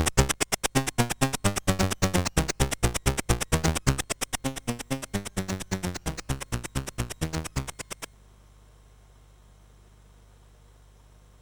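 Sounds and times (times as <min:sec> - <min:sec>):
MOS 8580 SID chip game music: 0:00.0 - 0:08.1.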